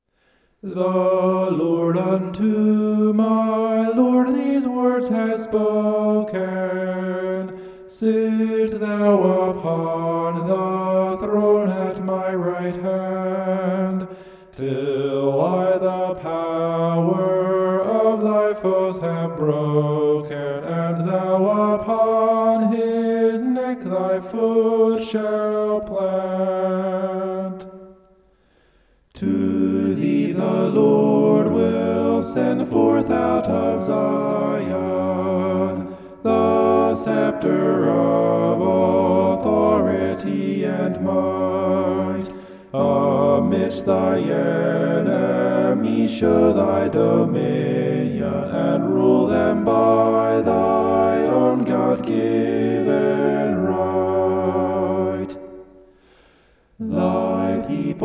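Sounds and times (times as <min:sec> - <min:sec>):
homophonic vocals: 0:00.6 - 0:28.2, 0:29.2 - 0:56.0, 0:56.7 - 0:58.0.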